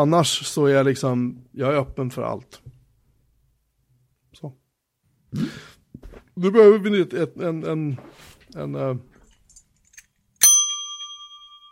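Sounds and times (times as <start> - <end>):
speech: 0.0 - 2.7, 4.4 - 4.6, 5.3 - 5.7, 6.4 - 9.1
desk bell ringing: 10.4 - 11.7.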